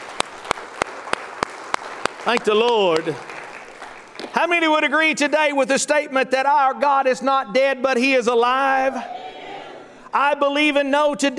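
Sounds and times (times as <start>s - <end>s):
audience hand clapping: 0.0s - 4.4s
speech: 2.2s - 3.4s, 4.4s - 9.2s, 10.1s - 11.3s.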